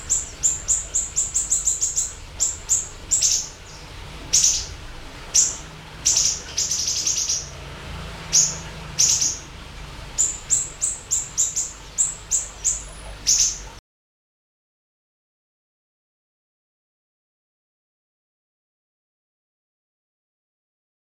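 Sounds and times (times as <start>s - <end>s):
siri-siri chirping: 0.0s - 13.8s.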